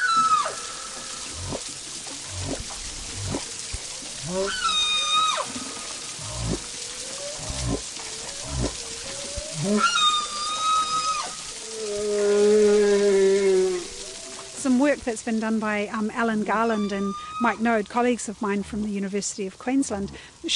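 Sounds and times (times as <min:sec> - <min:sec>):
humpback whale song: 0:00.0 - 0:01.7, 0:04.2 - 0:14.6
speech: 0:15.1 - 0:20.5.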